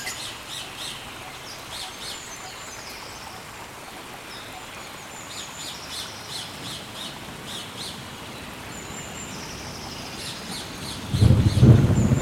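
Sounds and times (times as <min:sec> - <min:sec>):
rainforest ambience: 0:00.0 - 0:12.2.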